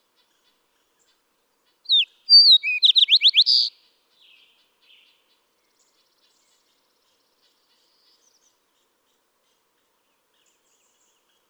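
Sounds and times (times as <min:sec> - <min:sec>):
fox sparrow singing: 0:01.9 - 0:03.7.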